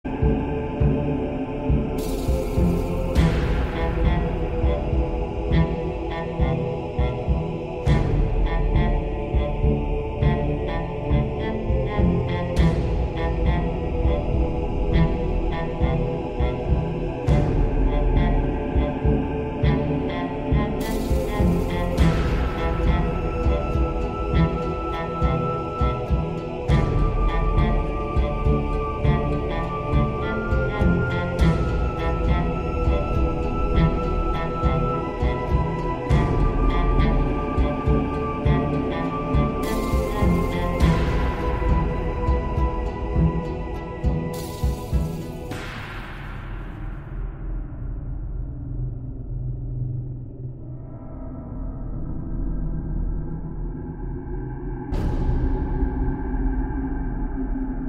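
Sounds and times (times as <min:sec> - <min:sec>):
creepy Egyptian music: 0:00.0 - 0:57.8.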